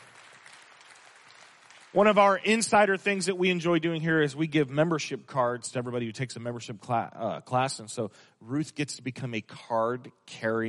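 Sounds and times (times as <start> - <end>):
welcoming applause from audience: 0.0 - 2.4
speech: 1.9 - 10.6.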